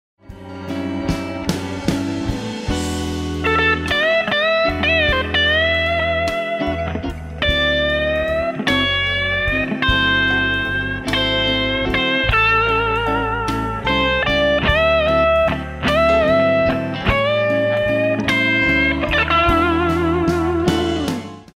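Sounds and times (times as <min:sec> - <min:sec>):
guitar blues lick: 0:00.4 - 0:21.5.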